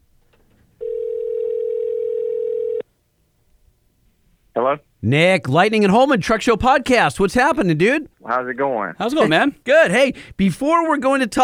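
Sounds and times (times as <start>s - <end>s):
telephone dial tone while dialing: 0.8s - 2.8s
speech: 4.7s - 11.4s.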